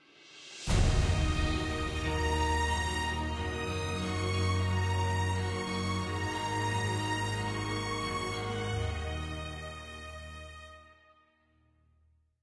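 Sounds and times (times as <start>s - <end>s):
musical stinger: 0.7s - 8.6s.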